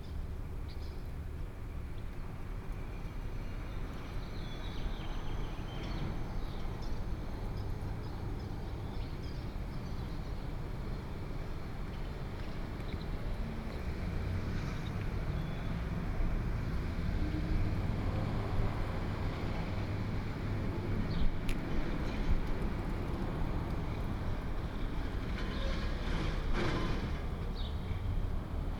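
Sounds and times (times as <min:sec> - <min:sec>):
train yard in Tucumcari: 0:00.0 - 0:28.7.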